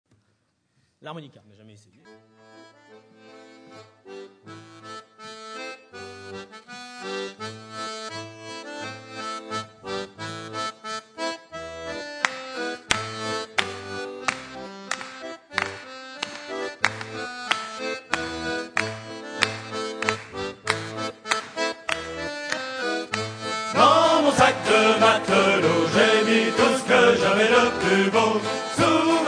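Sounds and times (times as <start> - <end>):
harmonica: 2.0 - 29.2.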